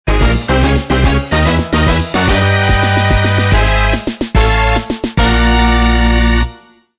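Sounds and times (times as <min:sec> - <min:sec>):
jingle: 0:00.1 - 0:06.9.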